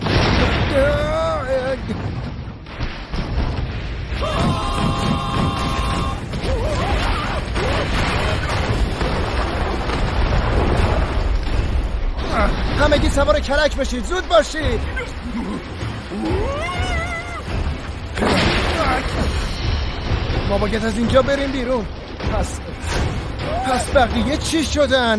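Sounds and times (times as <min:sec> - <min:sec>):
volcano erupting: 0:00.0 - 0:21.0
speech: 0:13.2 - 0:15.2, 0:20.5 - 0:22.7, 0:23.7 - 0:25.1.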